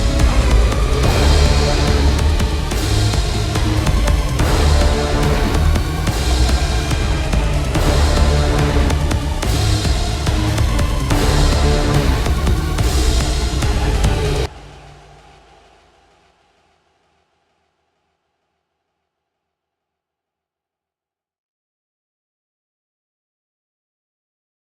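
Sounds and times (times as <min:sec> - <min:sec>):
tension music: 0:00.0 - 0:17.6.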